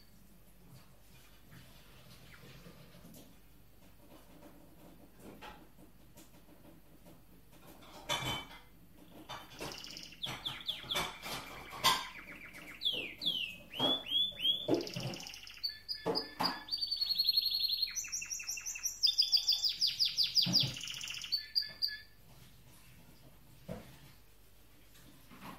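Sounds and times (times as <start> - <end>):
canary singing: 9.1 - 22.2.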